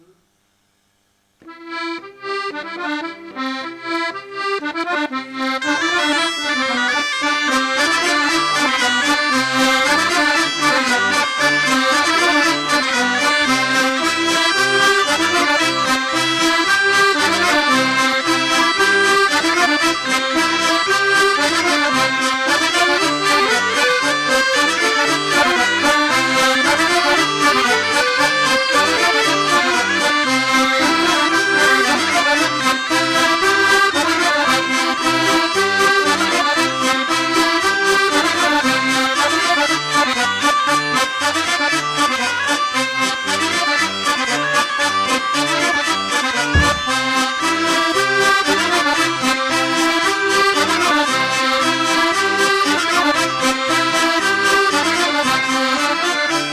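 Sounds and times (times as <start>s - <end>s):
polka music: 1.4s - 56.5s.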